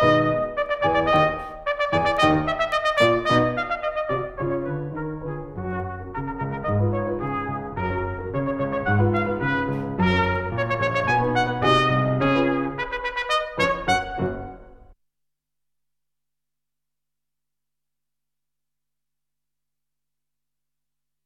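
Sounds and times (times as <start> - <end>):
trumpet: 0.0 - 15.0.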